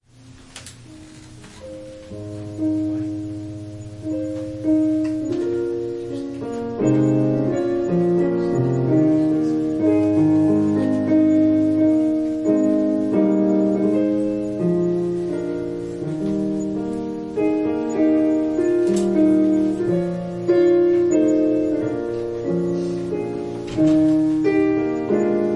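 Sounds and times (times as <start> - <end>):
piano prelude: 0.1 - 25.5.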